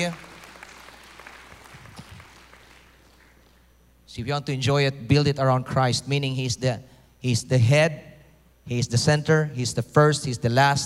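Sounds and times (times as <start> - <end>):
speech: 0.0 - 0.3, 4.2 - 8.1, 8.7 - 10.8
audience applause: 0.0 - 3.4.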